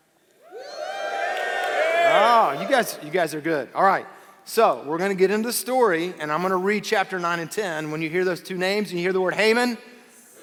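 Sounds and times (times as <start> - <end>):
audience cheering: 0.4 - 3.1
speech: 2.8 - 9.9.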